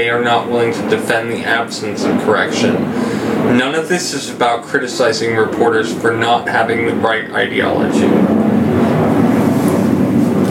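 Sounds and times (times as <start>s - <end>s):
speech: 0.0s - 8.4s
airplane flying overhead: 0.0s - 10.4s.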